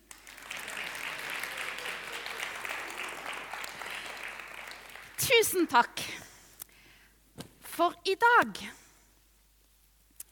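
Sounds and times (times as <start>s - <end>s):
audience clapping: 0.0s - 5.8s
speech: 5.2s - 6.2s, 7.8s - 8.8s.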